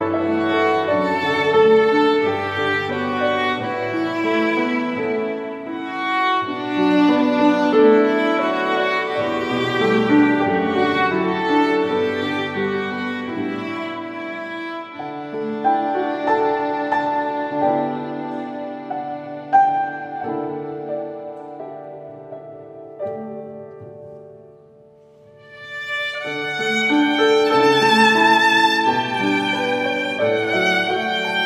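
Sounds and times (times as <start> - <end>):
instrumental music: 0.0 - 31.4.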